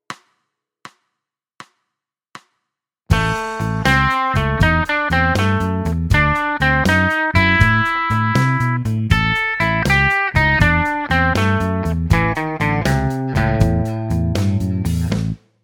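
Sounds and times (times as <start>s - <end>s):
blues music: 3.1s - 15.4s.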